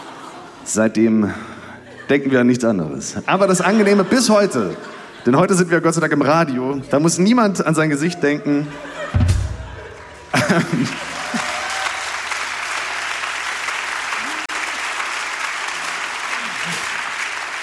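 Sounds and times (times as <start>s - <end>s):
laughter: 0.0s - 11.9s
speech: 0.7s - 9.2s, 10.4s - 11.1s
short audience applause: 9.9s - 17.6s.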